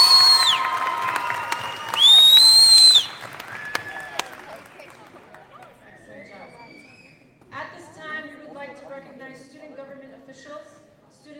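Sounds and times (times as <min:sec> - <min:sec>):
whoops and whistle-like cheers: 0:00.0 - 0:04.4
crowd applauding: 0:00.0 - 0:05.8.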